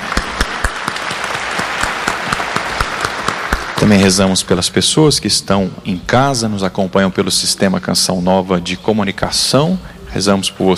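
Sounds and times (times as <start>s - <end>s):
audience applause: 0.0s - 4.3s
speech: 3.8s - 10.7s.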